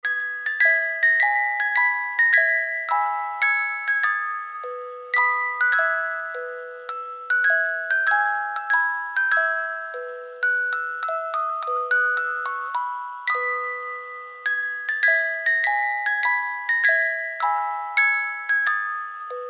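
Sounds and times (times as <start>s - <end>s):
music box melody: 0.0s - 19.4s.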